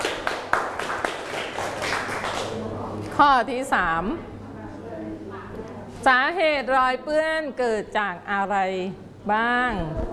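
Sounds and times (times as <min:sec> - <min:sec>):
children clapping for classmates: 0:00.0 - 0:02.6
speech: 0:03.2 - 0:04.3, 0:06.0 - 0:10.1.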